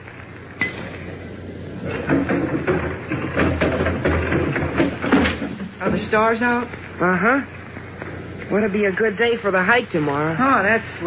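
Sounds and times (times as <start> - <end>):
window being opened: 1.8 - 6.1
speech: 6.1 - 7.6, 8.5 - 11.0.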